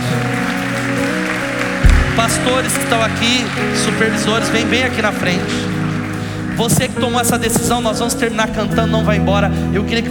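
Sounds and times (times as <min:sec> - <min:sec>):
crowd applauding: 0:00.0 - 0:08.4
sustained keyboard chords: 0:00.0 - 0:09.8
low thump: 0:01.8 - 0:02.6
speech: 0:02.2 - 0:05.8, 0:06.6 - 0:10.0.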